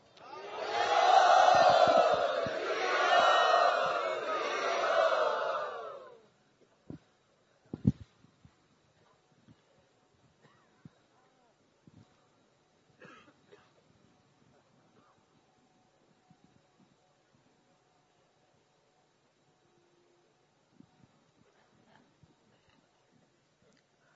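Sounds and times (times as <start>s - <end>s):
crowd cheering in welcome of His Holiness Kavichandra Maharaj: 0.0s - 6.2s.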